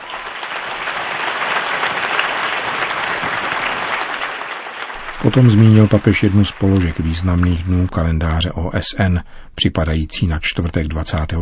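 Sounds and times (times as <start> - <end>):
crowd applause: 0.0 - 8.0
speech: 5.2 - 11.4.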